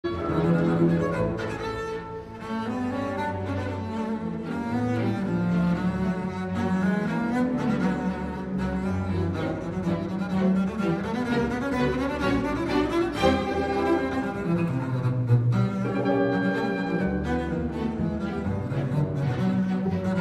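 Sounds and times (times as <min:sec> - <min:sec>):
double bass concerto: 0:00.0 - 0:20.1.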